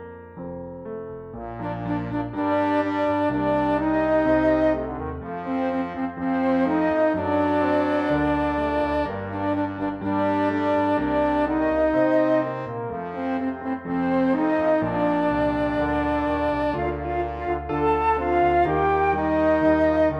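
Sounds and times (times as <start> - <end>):
piano playing hymns without words: 0.0 - 20.1
woodwind playing hymns without words: 1.4 - 20.1.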